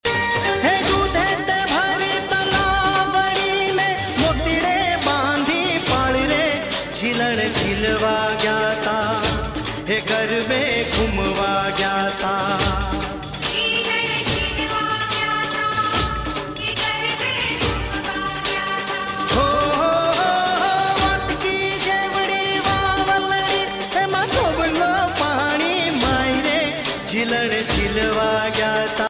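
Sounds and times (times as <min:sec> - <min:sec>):
Gujarati dandiya folk music: 0:00.0 - 0:29.0.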